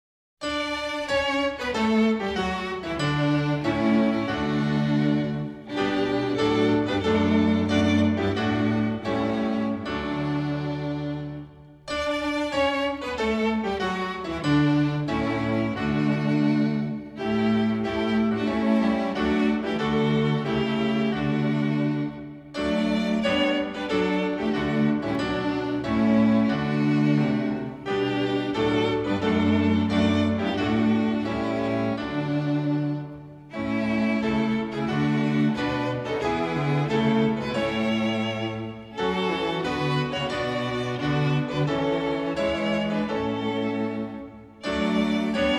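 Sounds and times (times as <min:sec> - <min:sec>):
instrumental hymn music: 0:00.4 - 0:45.5.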